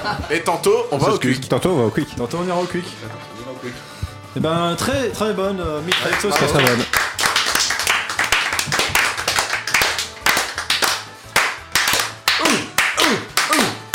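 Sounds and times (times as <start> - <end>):
speech: 0.0 - 7.0
applause: 5.9 - 13.9.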